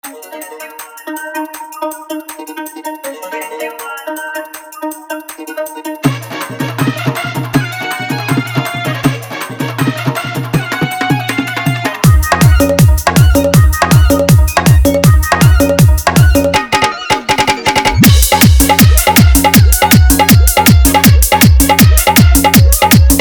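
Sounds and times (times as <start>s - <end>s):
dholak bass dance mix: 5.4s - 23.1s.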